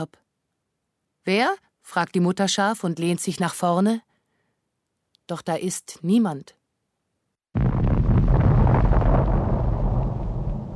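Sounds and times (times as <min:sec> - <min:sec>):
speech: 0:00.0 - 0:00.2, 0:01.2 - 0:04.1, 0:05.3 - 0:06.6
distant cannon fire: 0:07.6 - 0:10.7.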